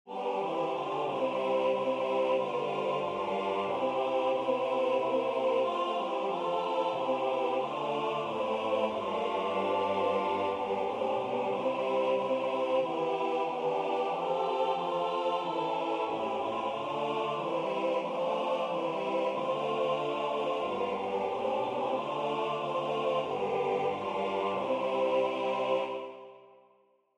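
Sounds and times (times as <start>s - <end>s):
SATB four-part choir singing: 0.1s - 26.6s.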